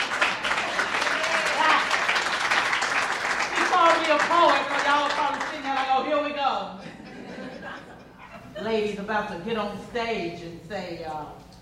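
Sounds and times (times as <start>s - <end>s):
audience clapping: 0.0s - 6.1s
laughter: 6.6s - 8.9s
speech: 8.6s - 11.4s.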